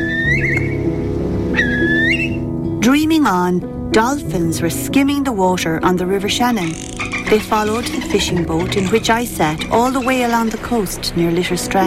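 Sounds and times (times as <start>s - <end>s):
curlew calling: 0.0s - 0.9s, 1.5s - 2.5s, 6.6s - 10.7s
speech: 2.8s - 11.8s.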